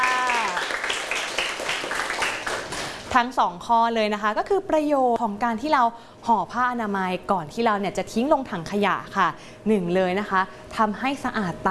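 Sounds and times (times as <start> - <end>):
applause for a classmate: 0.0 - 3.1
speech: 3.1 - 11.6.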